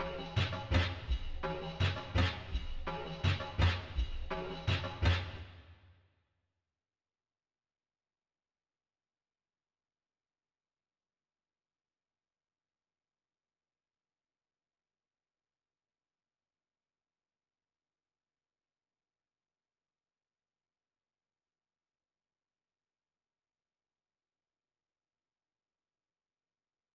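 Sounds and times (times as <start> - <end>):
percussion loop in F minor: 0.0 - 5.4.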